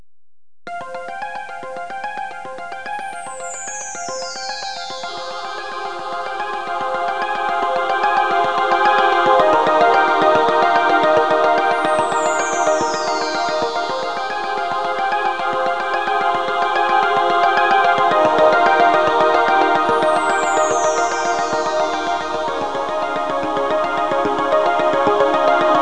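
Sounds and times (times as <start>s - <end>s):
music: 0.7s - 25.8s.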